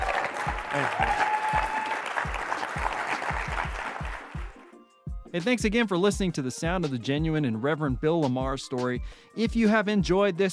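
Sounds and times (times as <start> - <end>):
audience applause: 0.0 - 4.6
speech: 0.7 - 1.3, 5.3 - 10.5.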